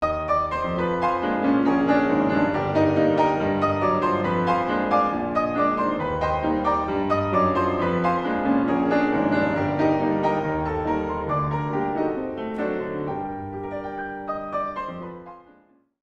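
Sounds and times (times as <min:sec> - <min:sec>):
ragtime music: 0:00.0 - 0:15.4.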